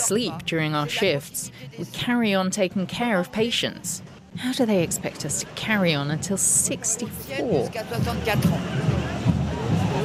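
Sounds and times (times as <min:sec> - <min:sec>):
protest crowd hubbub in a square: 0:00.0 - 0:10.0
speech: 0:00.1 - 0:09.2.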